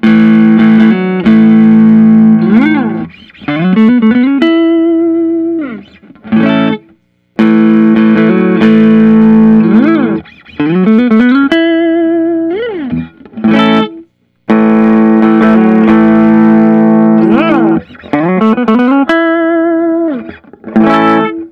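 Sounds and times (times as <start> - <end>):
Nik Huber Krautster II electric guitar: 0.0 - 21.5.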